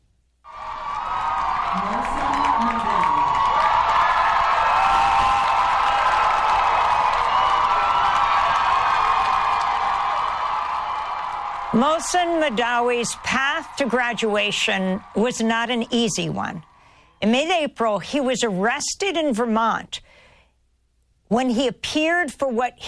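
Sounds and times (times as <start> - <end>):
students cheering and applauding at graduation: 0.5 - 17.1
speech: 11.8 - 20.2, 21.3 - 22.8.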